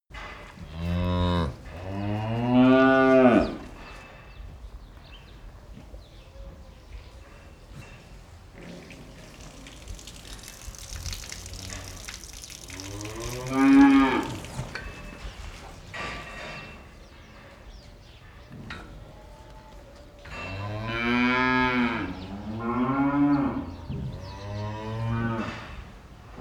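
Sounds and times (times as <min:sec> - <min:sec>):
cow mooing: 0:00.7 - 0:03.6, 0:08.6 - 0:14.8, 0:20.6 - 0:25.6
running water: 0:08.6 - 0:15.9.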